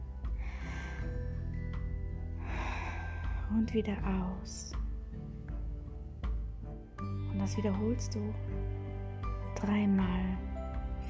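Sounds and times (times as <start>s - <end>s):
low tone: 0.0s - 11.0s
deep breath in during a guided breathing exercise: 0.1s - 3.6s
speech: 3.5s - 4.8s, 7.4s - 8.7s, 9.6s - 10.5s.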